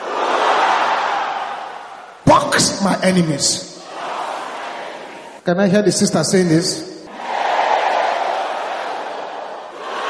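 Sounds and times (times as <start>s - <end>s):
audience roaring: 0.0s - 2.3s, 3.8s - 5.4s, 7.1s - 10.0s
speech: 2.6s - 3.7s, 5.5s - 6.9s.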